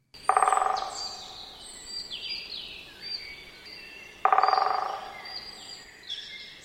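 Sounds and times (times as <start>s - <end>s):
songbirds chirping: 0.0s - 6.6s
great spotted woodpecker drumming: 0.2s - 2.2s, 4.1s - 5.8s.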